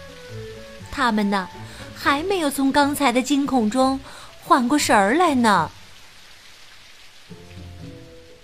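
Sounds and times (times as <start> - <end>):
rain falling: 0.0 - 8.4
speech: 0.3 - 5.8.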